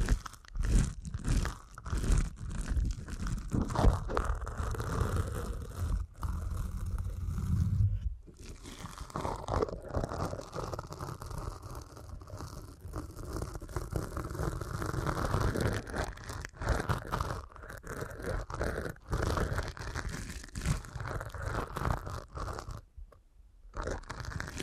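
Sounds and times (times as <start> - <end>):
deep ear canal massage crackling rubbing: 0.0 - 22.9, 23.7 - 24.6
low thumping pressure: 6.5 - 8.3.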